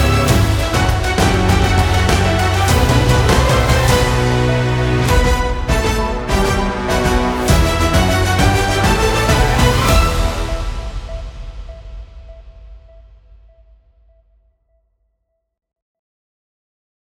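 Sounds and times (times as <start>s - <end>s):
breaking news intro music: 0.0s - 13.0s.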